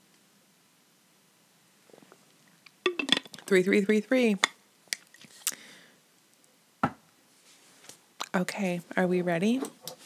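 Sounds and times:
speech: 0:03.5 - 0:04.5, 0:08.4 - 0:09.8
person drinking water from a glass: 0:05.0 - 0:05.8.

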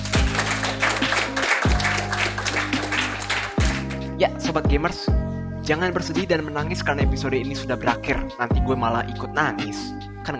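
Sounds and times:
audience clapping: 0:00.0 - 0:04.1
speech: 0:04.2 - 0:10.3.

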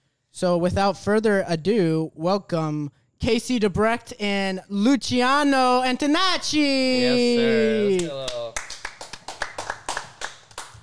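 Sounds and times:
speech: 0:00.4 - 0:08.4
audience applause welcoming two performers: 0:07.8 - 0:10.8.

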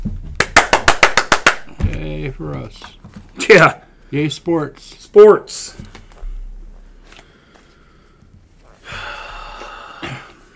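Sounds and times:
hand clap: 0:00.4 - 0:01.8
speech: 0:02.2 - 0:06.0.

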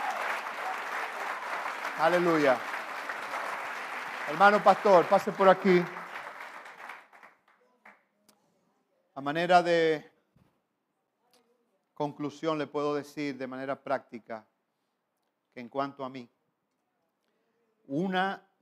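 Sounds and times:
audience applause: 0:00.0 - 0:07.3
speech: 0:02.0 - 0:02.7, 0:04.3 - 0:06.0, 0:09.2 - 0:10.1, 0:12.0 - 0:14.5, 0:15.6 - 0:16.4, 0:17.9 - 0:18.5.

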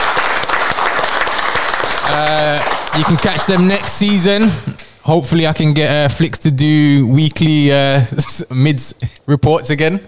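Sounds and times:
group applause: 0:00.0 - 0:04.5
speech: 0:02.1 - 0:10.0.

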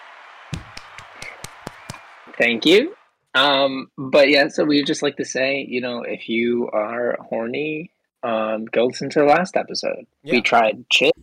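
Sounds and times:
hand clapping: 0:00.0 - 0:03.0
speech: 0:02.4 - 0:11.2.

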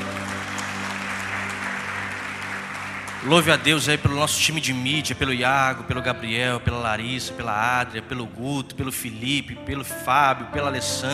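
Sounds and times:
audience applause: 0:00.0 - 0:05.0
speech: 0:03.2 - 0:11.1.

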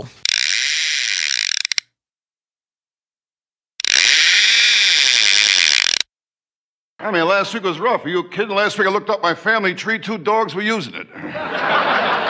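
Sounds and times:
speech: 0:00.0 - 0:00.3, 0:07.0 - 0:11.9
fishing reel whirring and ratcheting: 0:00.1 - 0:01.9, 0:03.8 - 0:06.1
laughter: 0:11.1 - 0:12.2.

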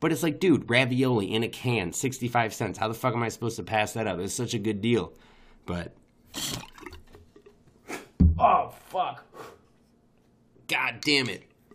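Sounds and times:
speech: 0:00.0 - 0:06.7, 0:10.7 - 0:11.5
water bubbling in a bong: 0:06.3 - 0:07.2.

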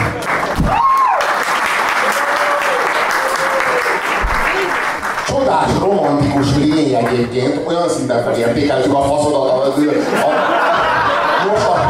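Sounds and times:
audience applause: 0:00.0 - 0:07.4
faint whoops: 0:00.6 - 0:01.4, 0:02.0 - 0:04.8
speech: 0:05.6 - 0:11.8
laughter: 0:09.7 - 0:11.8.

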